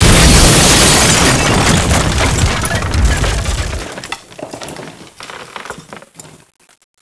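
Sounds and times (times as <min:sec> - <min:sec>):
crash: 0:00.0 - 0:05.3.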